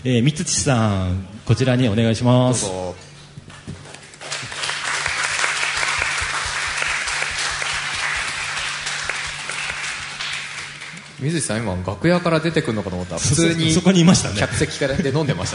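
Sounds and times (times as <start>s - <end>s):
speech: 0.0s - 3.0s, 11.2s - 15.5s
audience applause: 4.2s - 11.2s.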